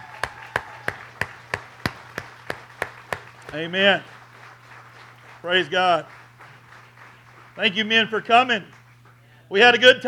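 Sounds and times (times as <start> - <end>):
audience applause: 0.0 - 7.8
speech: 3.5 - 4.1, 5.4 - 6.2, 7.6 - 8.8, 9.5 - 10.0.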